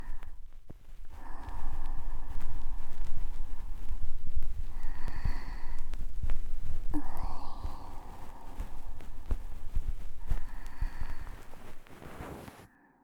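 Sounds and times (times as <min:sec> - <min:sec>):
ear cleaning with a feather brush in the right ear: 0:00.0 - 0:12.7.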